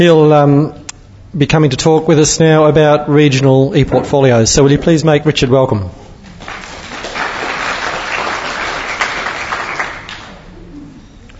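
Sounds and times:
speech: 0.0s - 6.0s
crowd applause: 6.3s - 10.6s.

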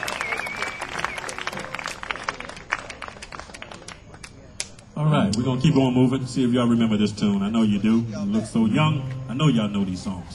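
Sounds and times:
high whistle: 0.0s - 1.6s
audience clapping for the band: 0.0s - 4.9s
faint crowd noise: 0.0s - 10.3s
speech: 5.0s - 10.3s.

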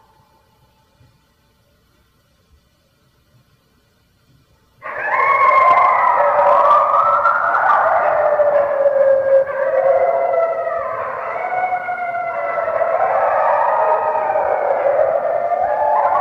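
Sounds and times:
red wolf howling: 4.8s - 16.1s.

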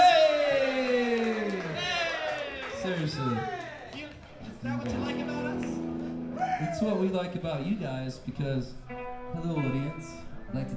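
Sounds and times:
audience cheering: 0.0s - 7.2s
audience clapping: 0.2s - 6.1s
speech: 3.0s - 3.6s, 6.8s - 10.7s.

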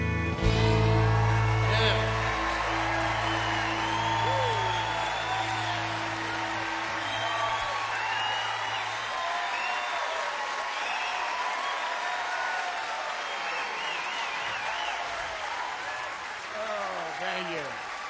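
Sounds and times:
crowd cheering: 0.2s - 18.0s
audience applause: 0.3s - 18.0s
whistles: 1.3s - 12.3s, 13.1s - 16.0s.

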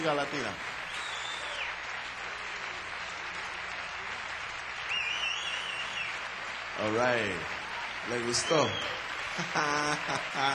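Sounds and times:
speech: 0.0s - 0.8s, 6.8s - 10.5s
crowd applause: 0.0s - 10.5s
faint whistle: 0.9s - 1.8s, 4.9s - 6.2s, 8.3s - 9.0s
laughter: 8.2s - 10.5s.

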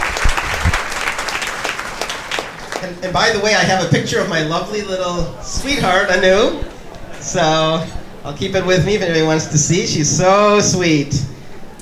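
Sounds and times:
audience applause: 0.0s - 3.5s
speech: 2.8s - 11.3s.

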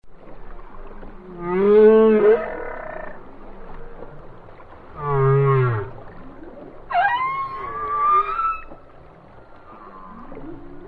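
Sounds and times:
whale song moans: 1.0s - 4.2s, 4.9s - 8.8s, 9.6s - 10.8s.

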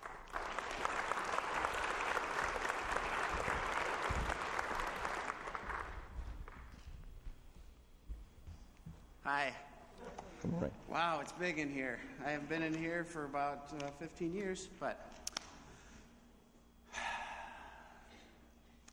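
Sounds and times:
church audience applause welcoming a speaker: 0.0s - 6.7s
speech: 9.4s - 9.7s, 10.4s - 15.2s.

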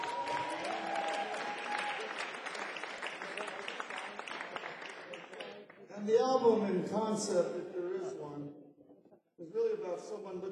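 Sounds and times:
crowd applauding: 0.0s - 5.9s
speech: 6.1s - 7.8s, 10.0s - 10.5s.

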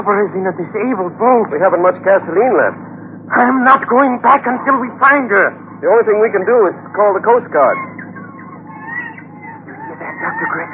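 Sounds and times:
speech: 0.0s - 8.0s
seagulls crying over open water: 6.8s - 10.7s.

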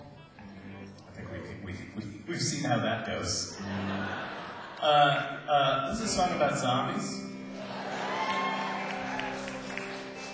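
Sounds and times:
speech: 1.7s - 7.3s
laughter: 3.2s - 5.5s, 7.5s - 10.3s
audience applause: 7.6s - 10.3s.

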